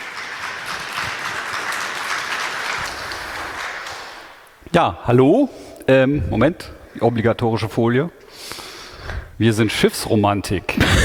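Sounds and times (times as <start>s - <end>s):
audience applause: 0.0s - 4.5s
speech: 4.7s - 8.3s, 9.4s - 11.0s.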